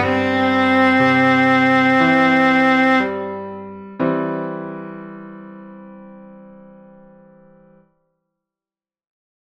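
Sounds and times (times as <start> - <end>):
viola: 0.0 - 3.3.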